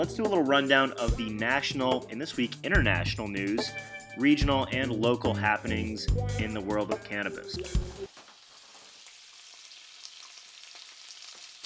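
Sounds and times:
speech: 0:00.0 - 0:08.0
bacon frying on a stove: 0:08.1 - 0:11.6.

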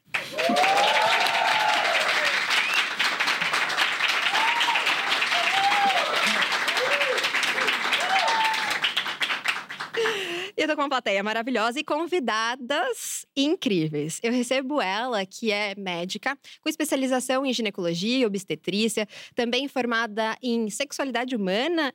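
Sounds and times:
live audience applauding: 0:00.0 - 0:10.5
audience cheers and whoops: 0:00.2 - 0:02.9, 0:04.1 - 0:09.0
speech: 0:10.8 - 0:21.9.

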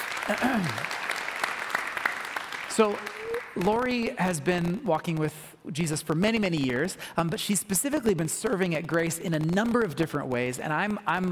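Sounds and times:
church audience applause welcoming a guest to the stage: 0:00.0 - 0:03.8
speech: 0:00.3 - 0:01.1, 0:02.8 - 0:11.3.

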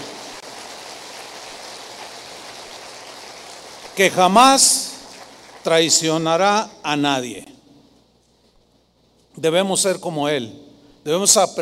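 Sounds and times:
audience applauding: 0:00.0 - 0:06.0
speech: 0:04.0 - 0:04.9, 0:05.6 - 0:07.5, 0:09.4 - 0:11.6.

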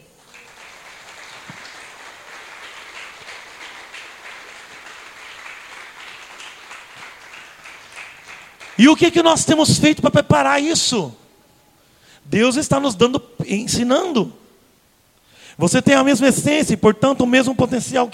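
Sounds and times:
audience applause: 0:00.0 - 0:09.0
speech: 0:08.8 - 0:11.2, 0:12.4 - 0:14.4, 0:15.6 - 0:18.1.

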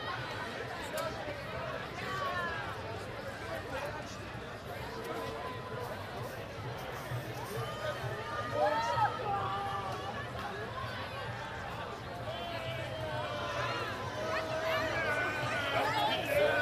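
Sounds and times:
crowd celebrating in The Hague after win over Brazil: 0:00.0 - 0:16.6.

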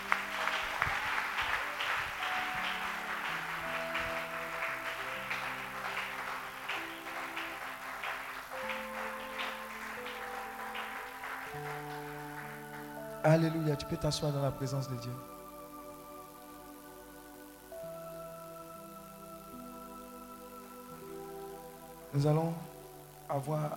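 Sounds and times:
church congregation applauding: 0:00.0 - 0:17.8
steady music tones: 0:00.0 - 0:23.7
speech: 0:13.2 - 0:15.3, 0:22.2 - 0:22.6, 0:23.3 - 0:23.7.

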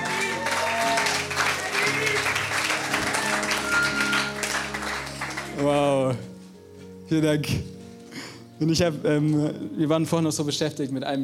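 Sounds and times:
audience applause: 0:00.0 - 0:05.9
speech: 0:07.1 - 0:07.8, 0:08.6 - 0:11.2.

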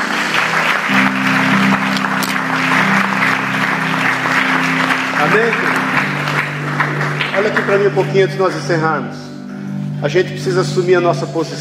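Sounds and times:
crowd applause: 0:00.0 - 0:08.8
speech: 0:05.2 - 0:05.7, 0:07.4 - 0:09.3, 0:10.0 - 0:11.5.

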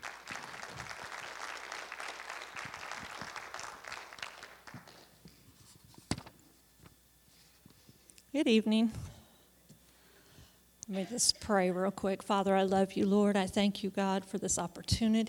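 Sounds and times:
audience applause welcoming a speaker at an evening devotion: 0:00.0 - 0:05.0
speech: 0:08.4 - 0:09.1, 0:10.9 - 0:15.2.

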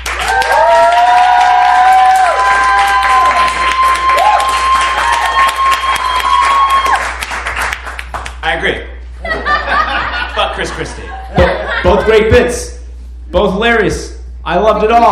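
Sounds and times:
audience whooping and cheering: 0:00.0 - 0:07.6
audience clapping: 0:00.0 - 0:08.8
laughter: 0:09.2 - 0:12.4
speech: 0:12.0 - 0:12.7, 0:13.3 - 0:15.1.

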